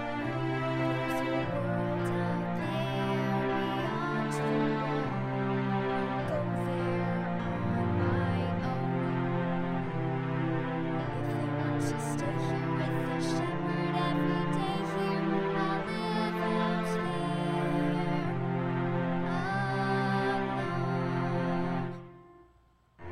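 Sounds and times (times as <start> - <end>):
vocals: 0.1 - 10.0, 11.0 - 22.1.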